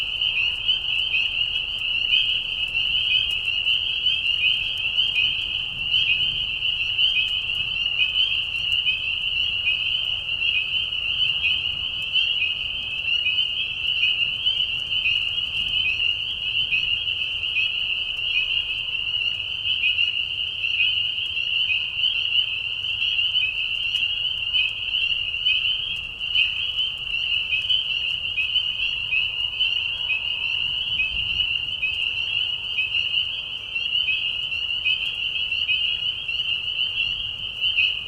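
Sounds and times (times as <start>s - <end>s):
spring peepers chorus peeping: 0.0s - 38.0s.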